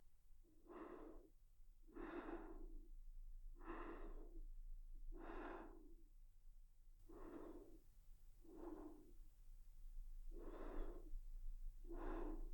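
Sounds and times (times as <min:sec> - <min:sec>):
sleeping breath: 0:00.6 - 0:01.3, 0:01.9 - 0:02.9, 0:03.6 - 0:04.4, 0:05.1 - 0:06.1, 0:07.1 - 0:09.4, 0:10.2 - 0:12.5.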